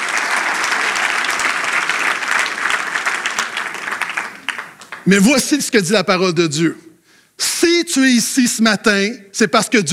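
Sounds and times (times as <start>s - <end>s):
audience applause: 0.0s - 5.2s
speech: 5.0s - 6.9s, 7.9s - 9.9s.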